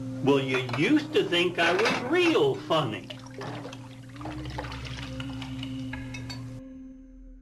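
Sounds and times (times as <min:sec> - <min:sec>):
speech: 0:00.2 - 0:03.6
water running while washing dishes: 0:00.7 - 0:06.4.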